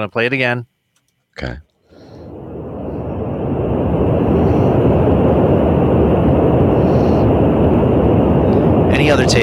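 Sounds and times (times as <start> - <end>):
speech: 0.0 - 0.7, 1.4 - 1.7, 9.2 - 9.4
steady green noise hiss: 2.0 - 9.4.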